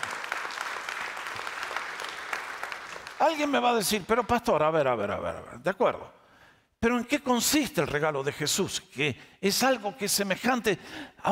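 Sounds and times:
audience applause: 0.0s - 3.6s
speech: 3.2s - 6.2s, 6.8s - 11.3s.

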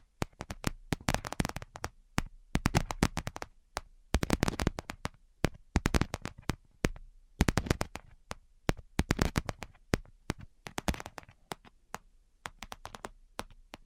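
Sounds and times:
fingernail tapping: 0.2s - 13.8s.

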